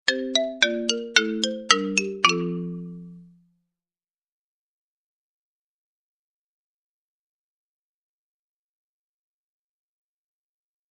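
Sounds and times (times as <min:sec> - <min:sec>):
xylophone: 0:00.1 - 0:03.4.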